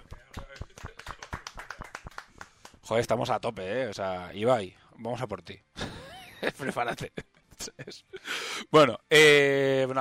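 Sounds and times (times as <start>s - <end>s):
people clapping: 0.0s - 2.9s
speech: 2.9s - 5.7s, 6.4s - 9.9s
laughter: 5.8s - 8.1s.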